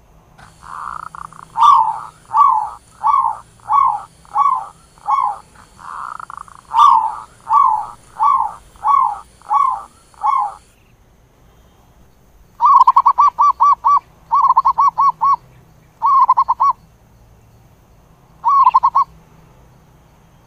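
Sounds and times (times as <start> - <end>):
Zebra dove cooing: 0.4 - 10.7, 12.6 - 15.4, 16.0 - 16.8, 18.4 - 19.1.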